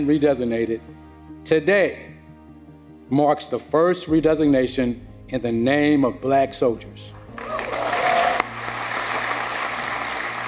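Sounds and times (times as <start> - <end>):
speech: 0.0 - 2.1, 3.1 - 7.2
crowd applause: 7.3 - 10.4.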